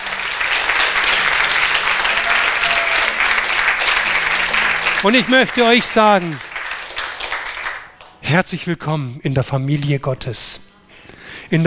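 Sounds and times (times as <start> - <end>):
audience applause: 0.0 - 8.2
speech: 5.0 - 6.5, 8.3 - 10.7, 11.5 - 11.6.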